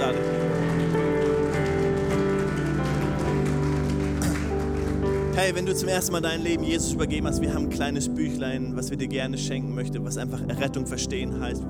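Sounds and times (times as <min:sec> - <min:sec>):
audience applause: 0:00.0 - 0:06.5
speech: 0:05.4 - 0:11.6.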